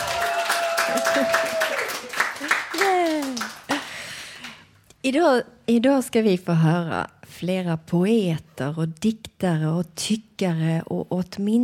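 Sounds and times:
voices cheering: 0:00.0 - 0:03.5
live audience applauding in dining hall: 0:00.0 - 0:04.6
laughter: 0:00.7 - 0:04.0
speech: 0:01.2 - 0:01.5, 0:05.1 - 0:11.6.

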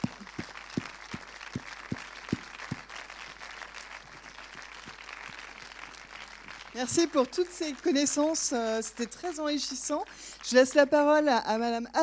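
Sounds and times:
audience applause: 0:00.0 - 0:08.5
speech: 0:06.8 - 0:12.0.

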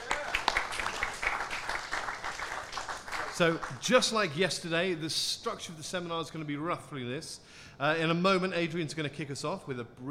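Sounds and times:
audience applause: 0:00.0 - 0:03.8
speech: 0:03.4 - 0:10.0.

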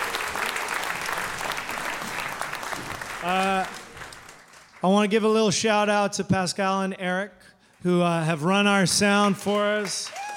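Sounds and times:
audience applause: 0:00.0 - 0:04.8, 0:09.2 - 0:10.3
speech: 0:03.2 - 0:03.8, 0:04.8 - 0:10.2.

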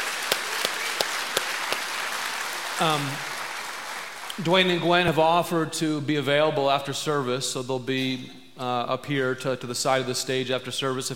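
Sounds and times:
audience applause: 0:00.0 - 0:04.4
speech: 0:02.8 - 0:03.3, 0:04.4 - 0:11.1.

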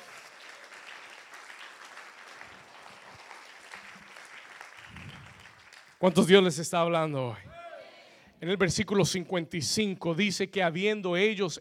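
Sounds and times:
loud audience applause: 0:00.0 - 0:06.0
speech: 0:06.0 - 0:07.5, 0:08.4 - 0:11.5.

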